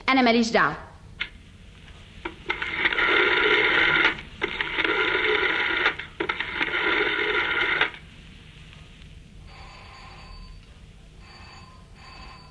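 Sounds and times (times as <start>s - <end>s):
telephone ringing in a dramatized domestic scene: 2.2s - 8.0s, 9.4s - 12.4s.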